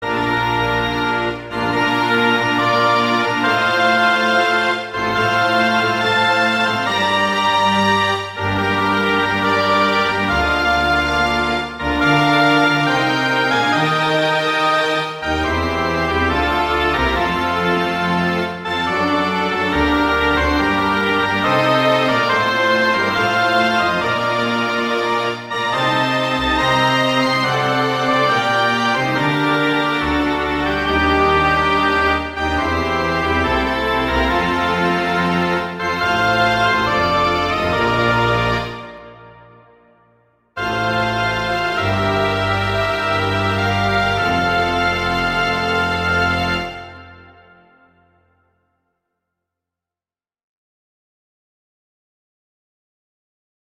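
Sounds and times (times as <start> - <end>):
staccato music in ordinary tempo: 0.0 - 39.4, 40.6 - 47.4.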